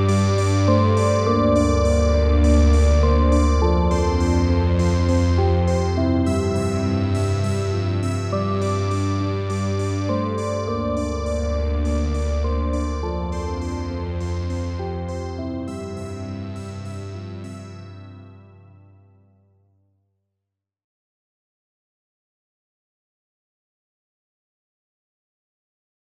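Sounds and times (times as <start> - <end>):
Roland Juno-106 analog synthesizer: 0.0 - 19.3.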